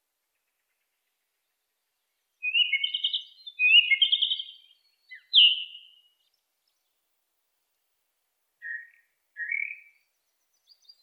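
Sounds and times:
song thrush singing varied phrases: 1.5 - 7.0, 8.6 - 11.0.

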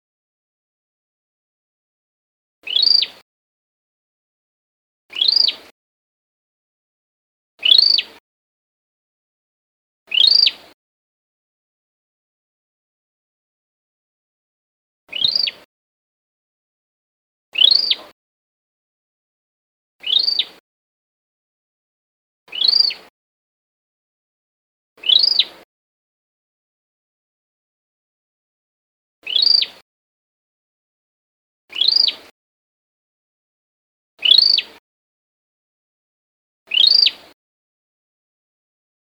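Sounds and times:
Cambodian tailorbird alarm call: 2.6 - 3.2, 5.1 - 5.7, 7.6 - 8.2, 10.1 - 10.6, 15.1 - 15.6, 17.6 - 18.1, 20.0 - 20.6, 22.5 - 23.1, 25.0 - 25.6, 29.2 - 29.8, 31.7 - 32.3, 34.2 - 34.8, 36.7 - 37.3.

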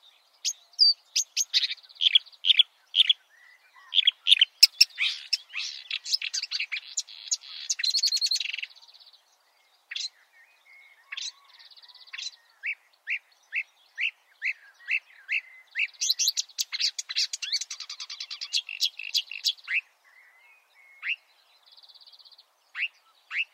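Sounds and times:
marsh warbler singing: 0.0 - 23.5.

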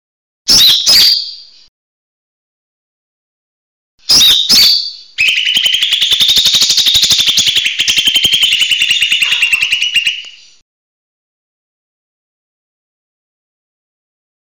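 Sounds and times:
leafbird whistled slurs: 4.1 - 10.6.

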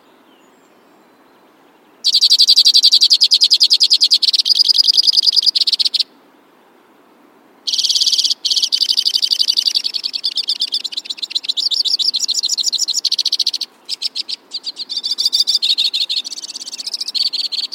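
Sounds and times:
White-winged crossbill trilling: 2.0 - 6.1, 7.7 - 17.7.

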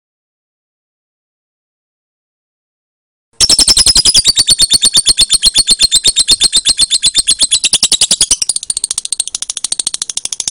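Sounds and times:
lovebird chattering song: 3.4 - 10.4.

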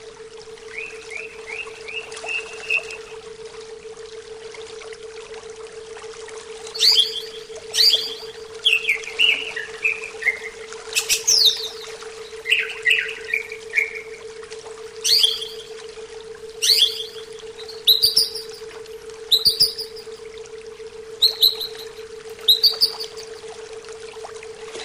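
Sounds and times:
steady hum: 0.0 - 24.8
greater green leafbird whistling song: 0.7 - 3.1, 6.7 - 14.2, 15.0 - 15.8, 16.6 - 20.2, 21.2 - 23.3.

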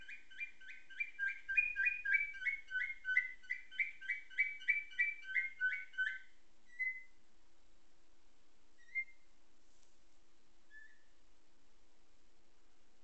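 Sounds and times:
Atlantic canary singing nightingale-tutored song: 0.0 - 7.2, 8.8 - 9.2, 10.7 - 11.1.

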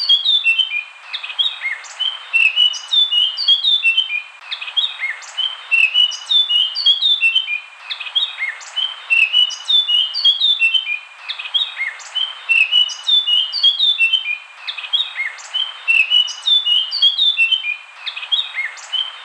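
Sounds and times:
Eurasian blackcap singing: 0.0 - 19.2.

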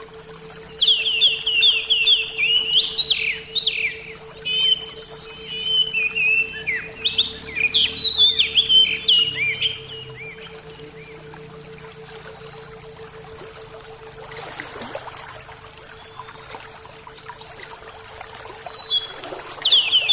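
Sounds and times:
Oriental magpie-robin song: 0.0 - 13.2, 15.4 - 20.1.

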